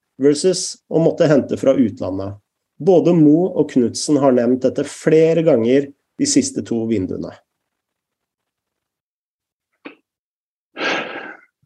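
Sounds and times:
speech: 0.2s - 7.5s
heavy breathing: 10.8s - 11.6s.

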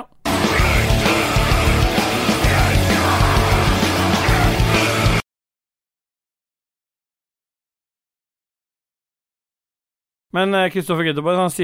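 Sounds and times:
death metal music: 0.3s - 5.2s
speech: 10.3s - 11.6s.

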